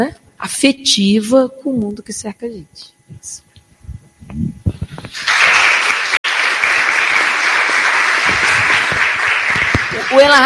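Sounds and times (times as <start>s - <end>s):
speech: 0.0s - 3.5s, 4.3s - 5.4s, 10.0s - 10.4s
audience applause: 5.2s - 10.4s.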